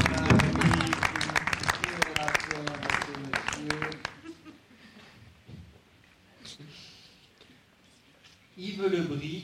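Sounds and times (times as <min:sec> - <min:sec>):
auction audience clapping for a buyer: 0:00.0 - 0:04.2.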